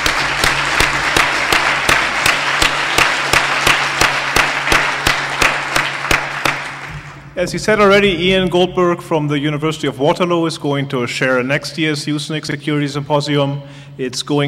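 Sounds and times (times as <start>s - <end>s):
audience applause: 0.0s - 7.3s
speech: 7.4s - 14.4s.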